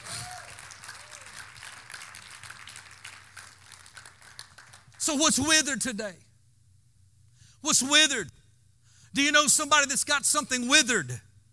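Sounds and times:
audience hand clapping: 0.0 - 5.2
speech: 5.0 - 6.2, 7.7 - 8.4, 9.2 - 11.3.

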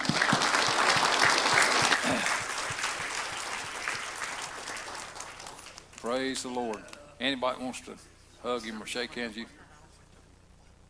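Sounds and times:
crowd applauding: 0.0 - 6.0
speech: 6.2 - 9.6.

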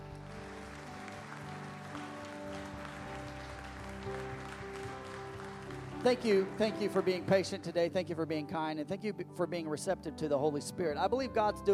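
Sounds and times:
audience clapping: 0.0 - 7.9
speech: 6.0 - 11.7.

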